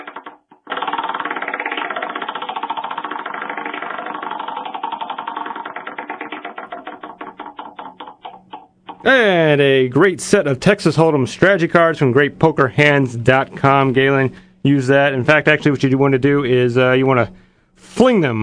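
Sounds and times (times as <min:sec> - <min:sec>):
prize wheel spinning and clicking: 0:00.0 - 0:09.4
speech: 0:09.0 - 0:18.4.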